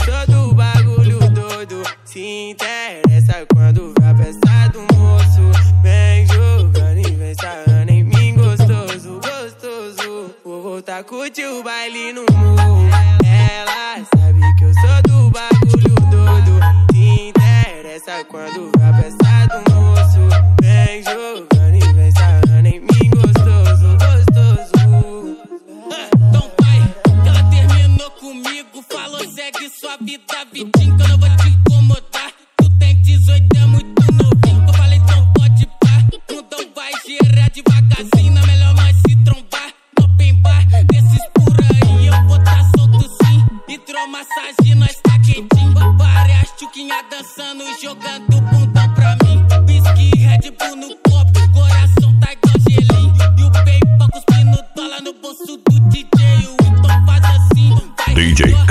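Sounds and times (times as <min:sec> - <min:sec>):
funk bass: 0:00.0 - 0:01.6, 0:03.1 - 0:09.0, 0:12.3 - 0:13.6, 0:14.2 - 0:17.7, 0:18.8 - 0:25.0, 0:26.2 - 0:28.1, 0:30.8 - 0:32.0, 0:32.6 - 0:36.2, 0:37.2 - 0:39.4, 0:40.0 - 0:43.5, 0:44.7 - 0:46.5, 0:48.5 - 0:50.4, 0:51.3 - 0:54.6, 0:56.1 - 0:58.6.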